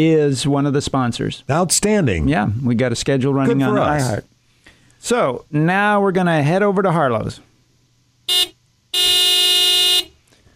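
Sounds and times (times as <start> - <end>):
speech: 0.0 - 4.3, 5.0 - 7.5, 8.3 - 8.6
car horn beeping: 8.3 - 10.2.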